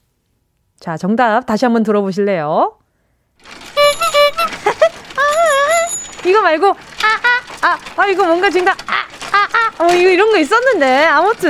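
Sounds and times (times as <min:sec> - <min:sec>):
speech: 0:00.8 - 0:02.8, 0:03.4 - 0:03.6, 0:06.2 - 0:09.0, 0:09.8 - 0:11.4
bicycle squeaks and squeal: 0:03.4 - 0:11.4
laughter: 0:04.1 - 0:05.6.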